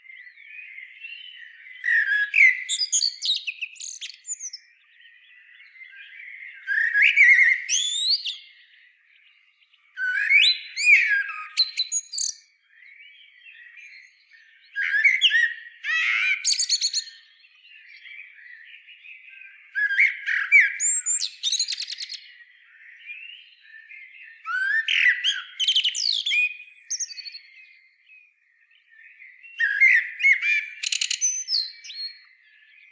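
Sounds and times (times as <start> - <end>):
common blackbird song: 0.0 - 32.9.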